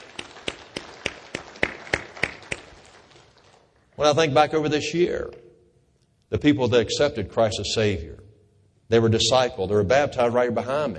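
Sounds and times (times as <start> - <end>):
audience applauding: 0.0 - 4.0
speech: 4.0 - 5.4, 6.3 - 8.2, 8.9 - 10.9.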